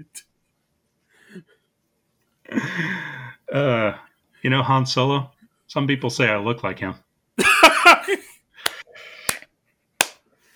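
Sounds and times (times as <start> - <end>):
speech: 0.0 - 0.3, 1.3 - 1.5, 2.5 - 7.5, 8.1 - 8.3
hands clapping in applause: 8.6 - 9.4, 10.0 - 10.2.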